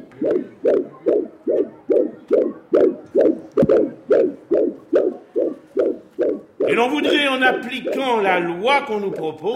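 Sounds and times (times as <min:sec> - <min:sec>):
tape recording of an 8 weeks 2 days fetal heartbeat: 0:00.0 - 0:09.5
speech: 0:06.7 - 0:09.5.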